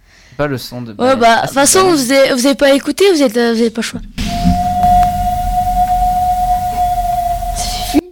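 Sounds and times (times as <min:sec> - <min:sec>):
speech: 0:00.3 - 0:04.1
whale call: 0:04.2 - 0:08.0.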